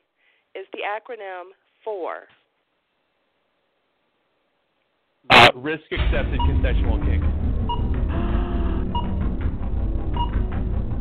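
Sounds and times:
speech: 0:00.6 - 0:02.4, 0:05.2 - 0:07.3
timer alarm going off: 0:06.4 - 0:06.7, 0:07.7 - 0:09.3, 0:10.1 - 0:10.6.

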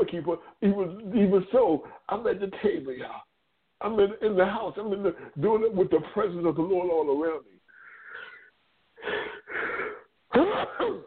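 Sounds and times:
speech: 0:00.1 - 0:07.6, 0:10.4 - 0:11.0
drawn-out wheezy breaths: 0:07.7 - 0:10.2
loud sudden sneeze: 0:10.3 - 0:11.0.

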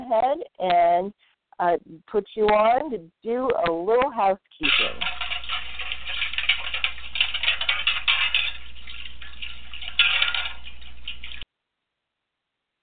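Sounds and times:
speech: 0:00.1 - 0:05.2
metal plates clattering and scraping in a metal wash tub on a stove: 0:04.6 - 0:11.4.

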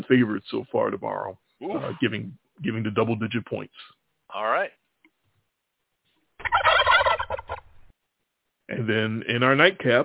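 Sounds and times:
speech: 0:00.1 - 0:04.8, 0:08.7 - 0:10.0
turkey gobbling: 0:06.4 - 0:07.7.

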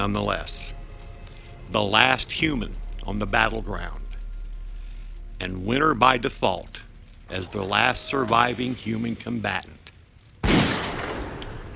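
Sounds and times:
speech: 0:00.0 - 0:00.6, 0:01.7 - 0:04.0, 0:05.4 - 0:09.8
heavy gunshot of an 88mm round: 0:10.4 - 0:11.4.

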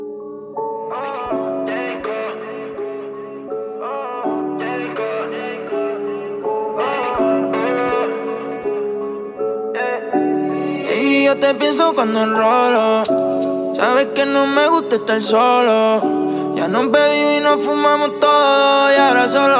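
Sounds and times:
song with layered sustained chords over bass line: 0:00.0 - 0:19.5
speech: 0:11.4 - 0:19.5.

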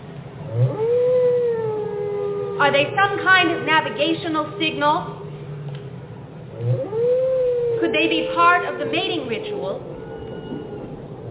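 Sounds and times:
low rumbling background: 0:00.0 - 0:11.3
whale song: 0:00.4 - 0:03.1, 0:06.5 - 0:11.3
speech: 0:02.6 - 0:05.2, 0:07.8 - 0:10.1.

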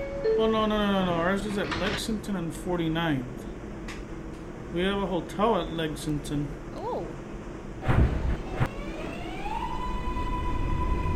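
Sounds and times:
subway train clunking into gear: 0:00.0 - 0:06.1, 0:07.5 - 0:11.1
speech: 0:00.4 - 0:03.5, 0:04.7 - 0:06.6.

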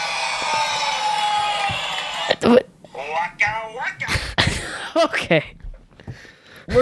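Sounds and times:
studio audience booing: 0:00.0 - 0:04.0
speech: 0:00.4 - 0:00.8, 0:02.4 - 0:02.7, 0:05.0 - 0:05.6.

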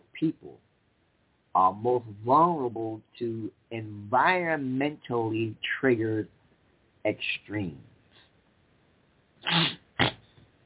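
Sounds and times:
speech: 0:00.2 - 0:00.7, 0:01.6 - 0:06.4, 0:07.0 - 0:07.9
person sniffling or sneezing: 0:09.4 - 0:10.3.

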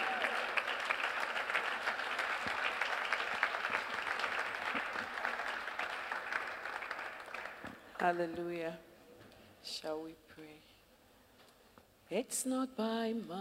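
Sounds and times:
audience clapping at a church gathering on marriage: 0:00.0 - 0:08.3
speech: 0:08.0 - 0:08.9, 0:09.6 - 0:10.7, 0:12.1 - 0:13.3.

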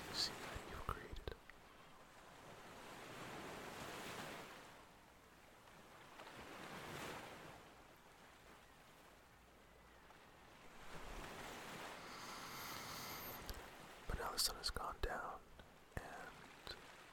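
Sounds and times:
ocean waves breaking and crashing on the shore: 0:00.0 - 0:00.7, 0:02.0 - 0:09.3, 0:10.1 - 0:14.1, 0:16.2 - 0:17.1
wind: 0:00.0 - 0:17.1.

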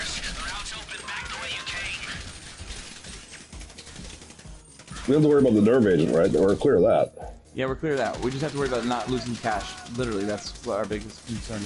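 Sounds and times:
gunfire hitting the player during a Diamond Casino heist in GTA Online: 0:00.0 - 0:05.6, 0:07.8 - 0:11.6
speech: 0:05.0 - 0:11.6.

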